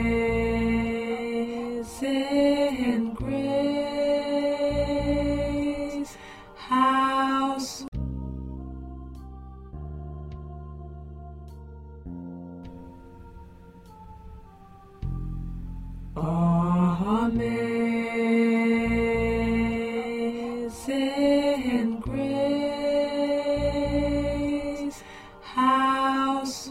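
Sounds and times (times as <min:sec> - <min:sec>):
first tenor voice singing: 0:00.0 - 0:08.0, 0:16.2 - 0:26.6.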